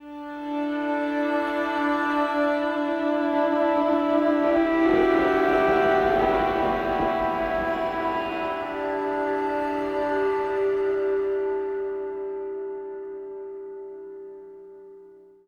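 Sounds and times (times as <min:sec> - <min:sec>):
acoustic drone: 0:00.0 - 0:14.8.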